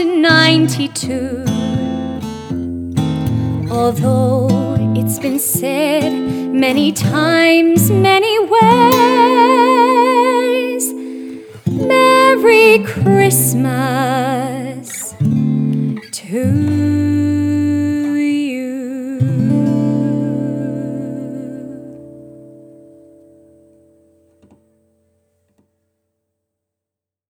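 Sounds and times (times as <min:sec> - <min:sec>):
woman singing a cover: 0:00.0 - 0:02.5, 0:03.3 - 0:22.7.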